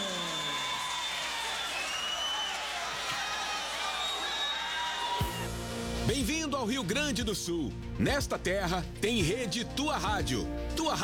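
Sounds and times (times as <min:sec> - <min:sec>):
audience clapping welcoming a guest: 0:00.0 - 0:05.4
speech: 0:06.1 - 0:11.0.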